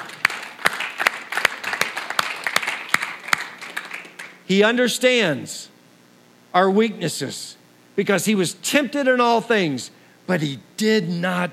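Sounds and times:
audience applause: 0.0 - 4.4
speech: 4.5 - 5.7, 6.6 - 11.5.

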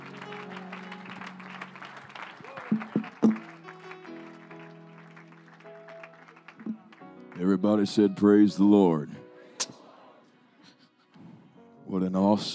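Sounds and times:
congregation clapping for a visiting evangelist at an evening service: 0.0 - 8.2
speech: 2.7 - 3.0, 7.5 - 9.2, 12.4 - 12.5.

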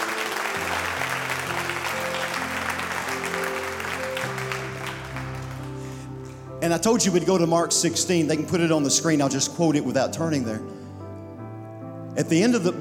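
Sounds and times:
audience hand clapping: 0.0 - 6.4
speech: 6.6 - 10.8, 12.2 - 12.7.

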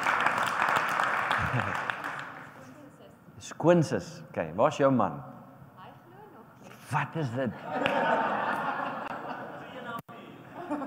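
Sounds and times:
audience clapping for a long-married couple: 0.0 - 2.5
laughter: 1.3 - 1.9, 7.5 - 10.8
speech: 1.4 - 1.9, 3.6 - 5.3, 6.9 - 8.2.

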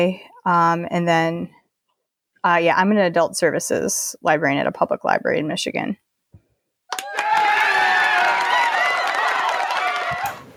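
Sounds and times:
speech: 0.0 - 1.6, 2.4 - 6.0
live studio audience applause and cheering: 6.9 - 10.5.

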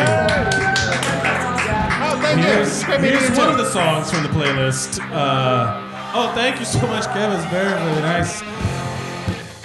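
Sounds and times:
audience clapping: 0.0 - 8.6
cheering voices: 0.0 - 9.5
speech: 2.4 - 8.8.

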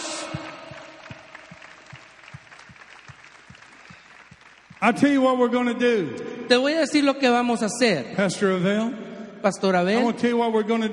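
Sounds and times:
applause: 0.0 - 5.6
speech: 4.8 - 10.9.

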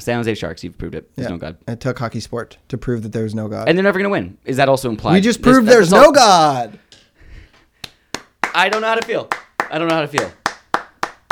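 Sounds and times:
speech: 0.0 - 6.9, 8.5 - 10.4
hand clapping: 7.6 - 11.3.

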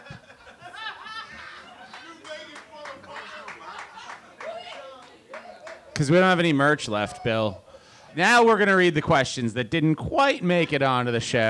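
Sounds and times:
scattered laughter: 0.0 - 4.5
crowd clapping: 1.0 - 6.8
speech: 6.0 - 7.6, 8.2 - 11.4.

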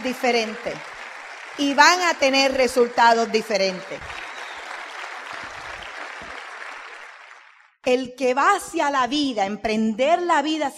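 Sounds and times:
speech: 0.0 - 1.0, 1.6 - 4.2, 7.9 - 10.7
audience applause: 0.0 - 7.8.

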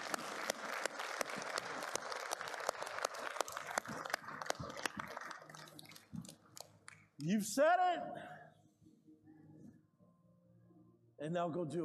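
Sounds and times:
audience clapping: 0.0 - 7.2
speech: 7.2 - 8.3, 11.2 - 11.8.

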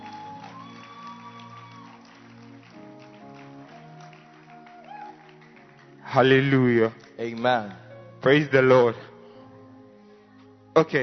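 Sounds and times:
audience clapping: 0.0 - 7.9
speech: 6.1 - 9.1, 10.8 - 11.0.

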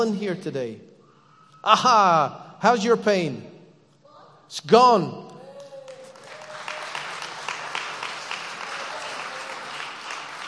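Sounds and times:
speech: 0.0 - 0.9, 1.6 - 3.5, 4.5 - 5.2
audience clapping: 5.5 - 10.4.

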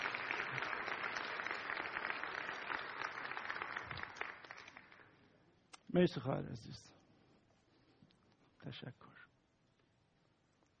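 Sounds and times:
congregation applause at a Christian gathering: 0.0 - 5.2
speech: 6.0 - 7.0, 8.6 - 9.3.

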